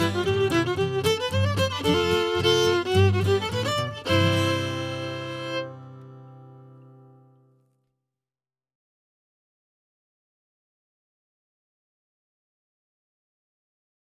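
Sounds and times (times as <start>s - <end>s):
fiddle: 0.0s - 7.5s.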